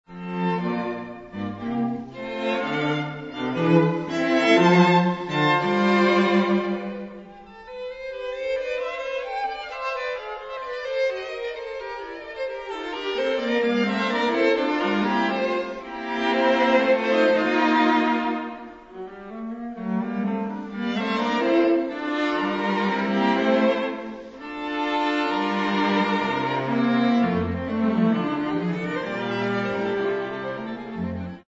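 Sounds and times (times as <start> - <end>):
piano quartet: 0.2 - 31.4.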